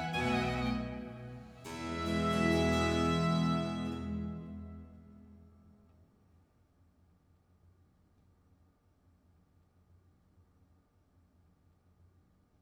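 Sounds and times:
concerto grosso in F major: 0:00.0 - 0:05.0.

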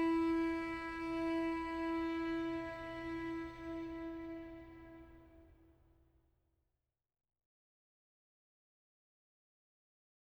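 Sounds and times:
musical trio: 0:00.0 - 0:05.3.

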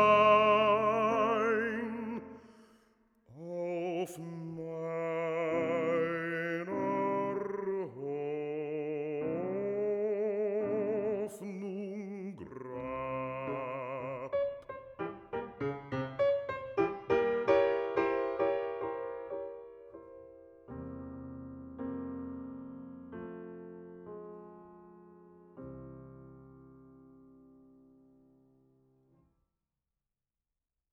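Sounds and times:
person singing a song cycle: 0:00.0 - 0:14.7
piano: 0:00.0 - 0:29.2.

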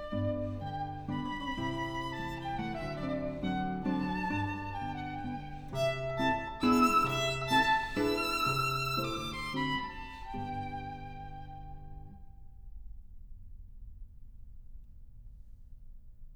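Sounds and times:
piano waltz: 0:00.0 - 0:12.2.

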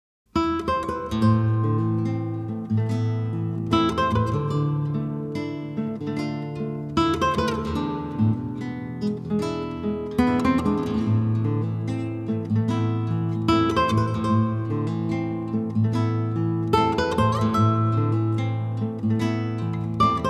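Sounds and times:
guitar: 0:00.3 - 0:20.2.

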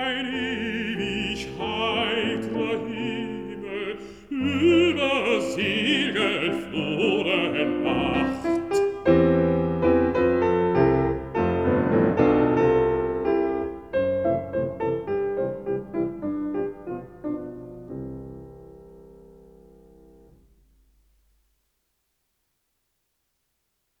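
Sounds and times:
person singing: 0:00.0 - 0:09.2
piano: 0:00.0 - 0:21.7.

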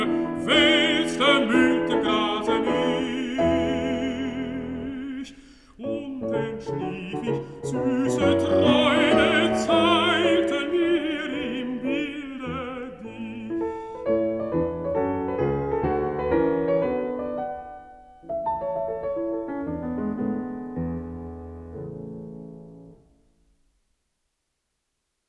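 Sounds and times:
person singing: 0:00.0 - 0:14.4
piano: 0:00.0 - 0:23.8.

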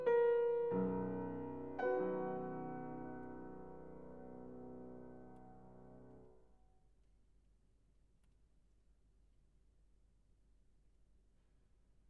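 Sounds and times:
piano piece in B major: 0:00.0 - 0:06.5.

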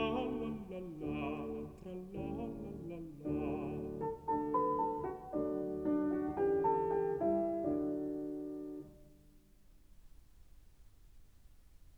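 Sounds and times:
person singing: 0:00.0 - 0:04.8
piano: 0:00.0 - 0:11.9.

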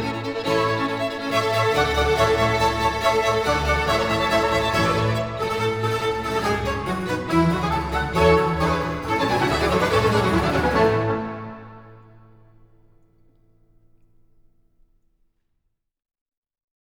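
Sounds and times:
two oboes with strings and continuo: 0:00.0 - 0:13.0.

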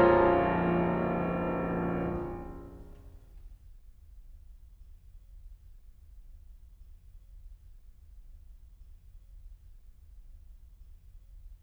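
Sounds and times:
fast piano sonata finale in B-flat minor: 0:00.0 - 0:02.8.

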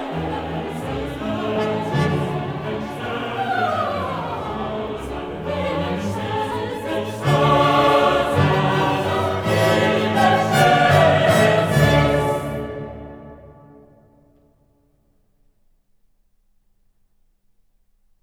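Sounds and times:
soloists, chorus and orchestra performing a requiem Sanctus: 0:00.0 - 0:14.5.

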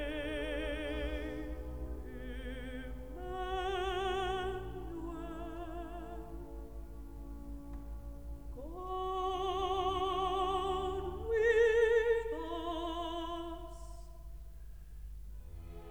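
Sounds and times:
contralto singing recitative: 0:00.0 - 0:06.8, 0:08.6 - 0:14.0.

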